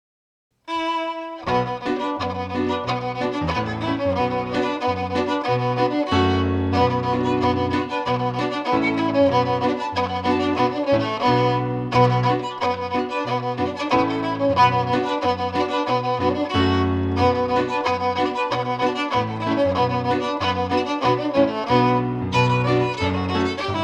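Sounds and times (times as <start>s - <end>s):
reel tune: 0.7s - 23.8s.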